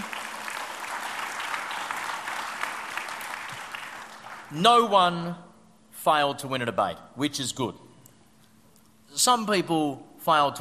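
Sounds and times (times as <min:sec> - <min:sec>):
round of applause from a crowd: 0:00.0 - 0:04.5
speech: 0:04.5 - 0:05.4, 0:06.0 - 0:07.8, 0:09.1 - 0:10.5.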